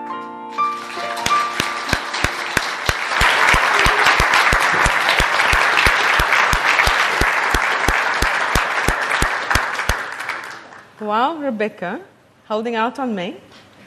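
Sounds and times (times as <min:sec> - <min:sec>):
audience applause after a song at a church gathering: 0:00.5 - 0:11.0
speech: 0:11.2 - 0:13.6.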